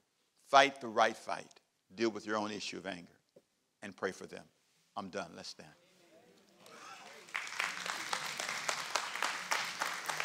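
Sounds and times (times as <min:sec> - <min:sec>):
speech: 0:00.5 - 0:03.2, 0:03.8 - 0:05.8
crowd applauding: 0:06.6 - 0:10.2.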